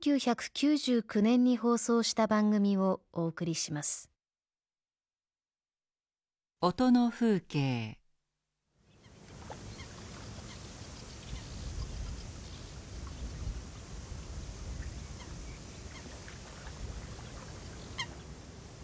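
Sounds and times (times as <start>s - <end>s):
speech: 0.0s - 4.1s, 6.6s - 8.0s
canal countryside ambience at Kinderdijk in the Netherlands: 8.9s - 18.8s.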